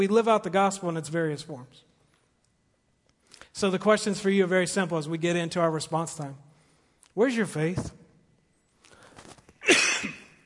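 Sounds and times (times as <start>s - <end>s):
speech: 0.0s - 1.9s, 3.6s - 6.5s, 7.2s - 8.0s
cough into the microphone: 9.6s - 10.4s.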